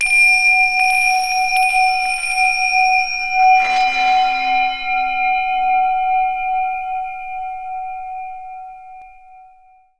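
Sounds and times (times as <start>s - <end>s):
zen tingsha chime: 0.0s - 7.6s.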